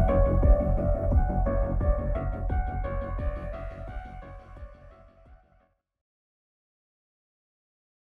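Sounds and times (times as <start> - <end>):
drum and bass mix: 0.0 - 5.0.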